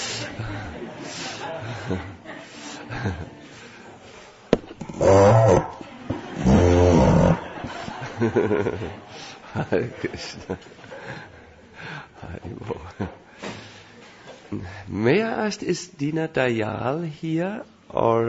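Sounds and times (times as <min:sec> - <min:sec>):
laughter: 0:00.0 - 0:04.3, 0:04.9 - 0:14.4
murmuring sound: 0:00.0 - 0:14.8
speech: 0:00.4 - 0:02.2, 0:02.9 - 0:03.4, 0:08.2 - 0:11.3, 0:14.5 - 0:18.2
person imitating donkey bray: 0:04.9 - 0:05.8.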